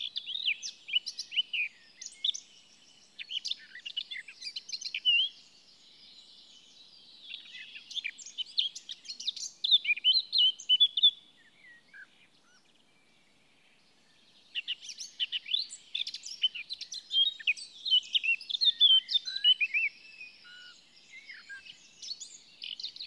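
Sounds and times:
Eurasian blackcap singing: 0.0 - 12.9, 14.4 - 23.0.

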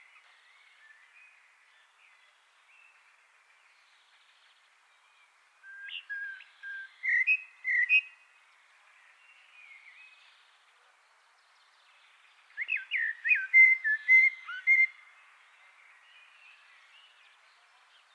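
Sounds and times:
Eurasian blackbird singing: 5.7 - 8.1, 12.6 - 15.0.

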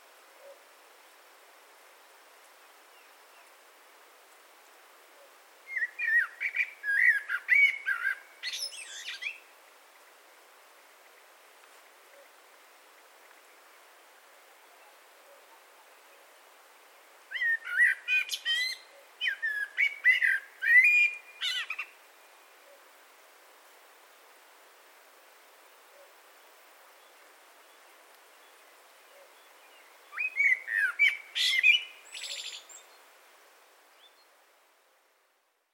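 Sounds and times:
Eurasian blackbird song: 5.7 - 9.4, 17.3 - 21.9, 27.0 - 33.0, 34.0 - 34.3.

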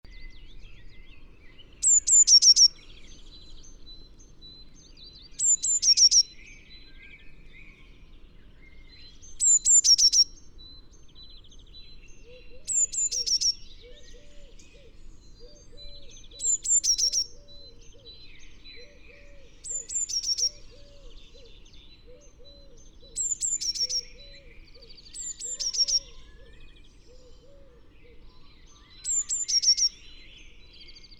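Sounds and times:
Eurasian blue tit song: 0.1 - 31.1.

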